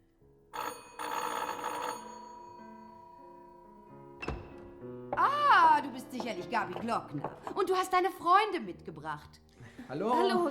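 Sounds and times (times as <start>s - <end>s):
doorbell ringing: 0.6s - 5.3s
speech: 5.2s - 10.5s
laughter: 9.6s - 10.5s.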